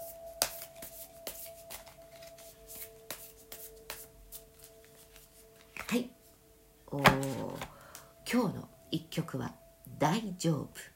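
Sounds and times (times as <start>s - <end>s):
card being drawn: 0.4s - 6.0s
deck of cards being shuffled: 0.4s - 6.0s, 7.0s - 7.7s
speech: 5.9s - 6.2s, 6.9s - 7.7s, 8.3s - 10.9s.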